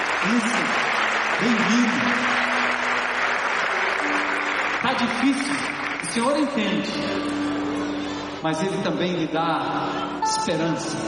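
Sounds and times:
audience applauding: 0.0s - 7.3s
speech: 0.2s - 0.8s, 1.4s - 2.2s, 5.0s - 7.5s, 8.4s - 11.0s.

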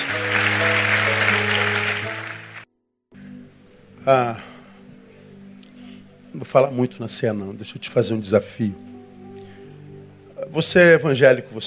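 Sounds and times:
audience applauding: 0.0s - 2.7s
sustained low musical tones: 0.0s - 11.6s
speech: 4.0s - 4.5s, 6.3s - 8.9s, 10.5s - 11.6s.

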